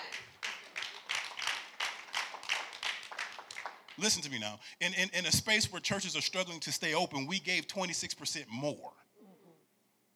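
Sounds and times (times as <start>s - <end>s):
audience clapping: 0.0s - 4.6s
speech: 4.0s - 9.0s.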